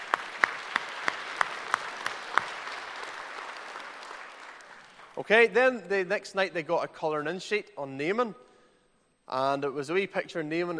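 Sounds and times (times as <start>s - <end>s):
applause for winners: 0.0s - 5.2s
speech: 5.2s - 8.5s, 9.3s - 10.7s.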